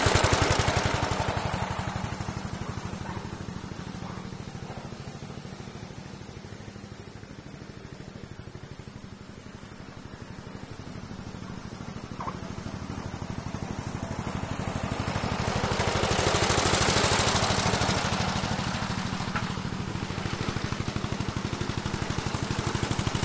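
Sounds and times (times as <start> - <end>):
Ransomes 24in petrol motor mower starting, running and passing: 0.0 - 23.2.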